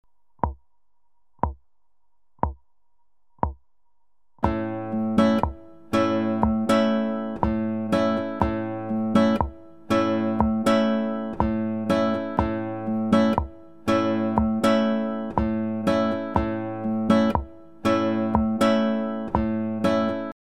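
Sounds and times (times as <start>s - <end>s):
string picking: 4.4s - 20.3s.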